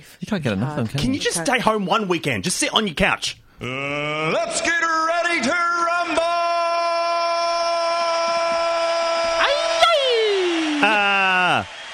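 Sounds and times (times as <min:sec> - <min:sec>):
speech: 0:00.0 - 0:06.3
person yelling excitedly: 0:03.9 - 0:11.6.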